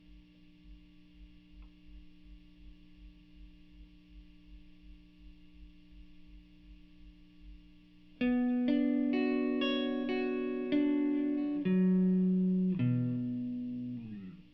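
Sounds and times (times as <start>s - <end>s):
guitar: 5.4s - 14.5s.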